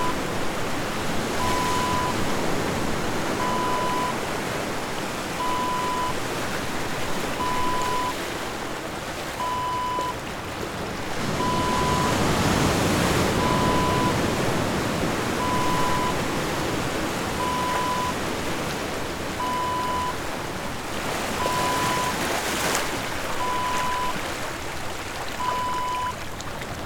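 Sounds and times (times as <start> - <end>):
ocean waves: 0.0 - 26.8.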